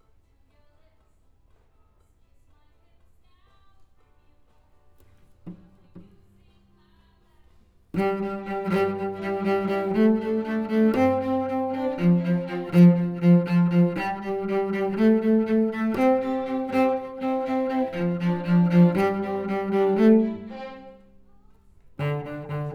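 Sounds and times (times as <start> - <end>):
cello: 5.0 - 6.6, 8.0 - 22.7.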